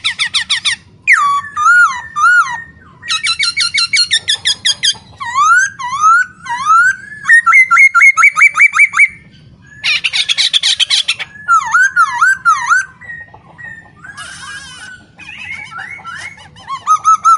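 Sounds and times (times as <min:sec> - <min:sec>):
caged masked laughingthrush in full song: 0:00.0 - 0:17.3.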